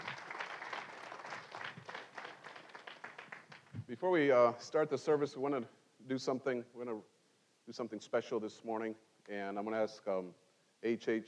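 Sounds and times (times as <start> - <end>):
audience hand clapping: 0.0 - 3.8
speech: 3.9 - 7.1, 7.7 - 11.2.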